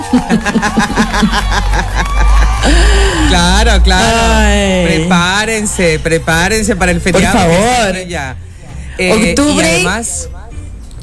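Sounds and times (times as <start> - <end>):
studio audience clapping: 0.0 - 5.6
studio audience cheering and whooping: 0.0 - 6.6
laughter: 0.0 - 10.1
speech: 0.1 - 2.3, 3.3 - 10.4.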